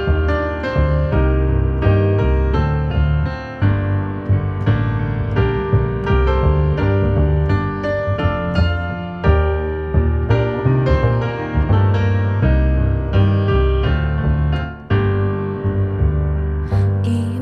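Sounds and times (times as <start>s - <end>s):
piano: 0.0s - 17.4s
voice: 16.7s - 17.4s.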